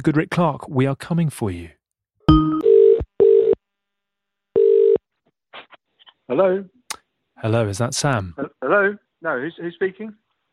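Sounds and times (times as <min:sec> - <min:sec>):
speech: 0:00.0 - 0:01.8, 0:06.3 - 0:06.8, 0:07.4 - 0:10.2
telephone ring tones calling a contest winner: 0:02.3 - 0:03.6, 0:04.6 - 0:05.0.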